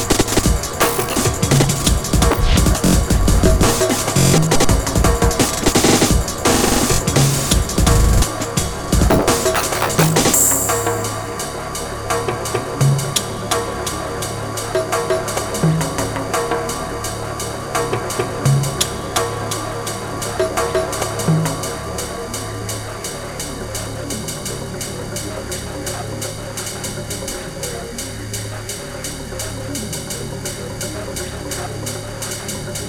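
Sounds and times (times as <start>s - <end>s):
aggressive tribal music: 0.0s - 25.0s.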